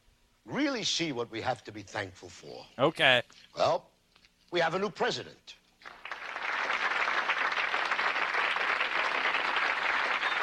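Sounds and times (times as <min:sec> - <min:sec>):
speech: 0:00.6 - 0:03.9, 0:04.5 - 0:06.0
crowd applauding: 0:05.8 - 0:10.4.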